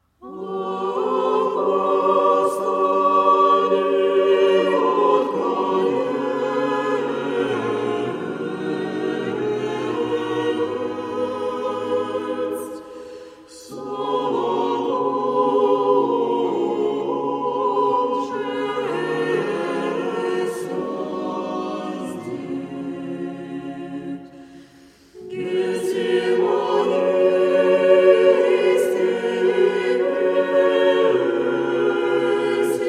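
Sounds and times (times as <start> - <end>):
church choir singing a hymn: 0.0 - 32.8.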